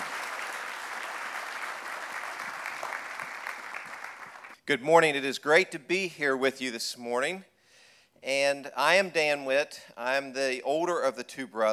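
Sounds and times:
audience applause welcoming speakers: 0:00.0 - 0:04.6
speech: 0:04.7 - 0:07.5, 0:08.2 - 0:11.7.

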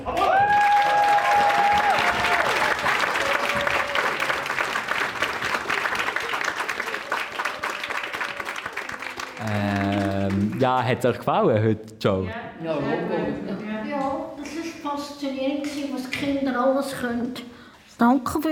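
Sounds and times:
audience applause: 0:00.0 - 0:11.2
speech: 0:10.6 - 0:18.4.

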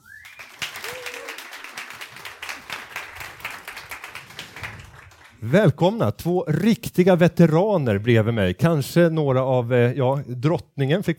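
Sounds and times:
audience applause: 0:00.0 - 0:05.4
speech: 0:05.4 - 0:11.1.

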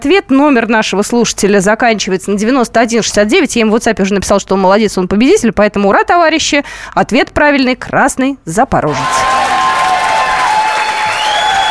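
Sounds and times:
speech: 0:00.0 - 0:09.4
crowd applause sound effect: 0:08.9 - 0:11.6.

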